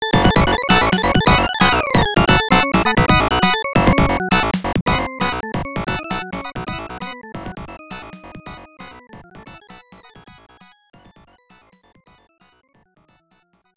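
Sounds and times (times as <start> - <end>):
bonus stage game music: 0.0 - 10.7.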